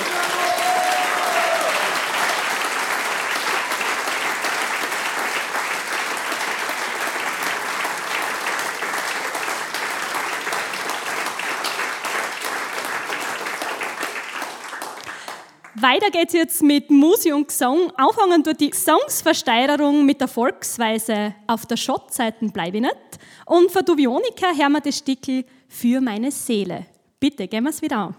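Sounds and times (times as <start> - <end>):
audience applause: 0.0 - 15.7
speech: 15.8 - 28.1.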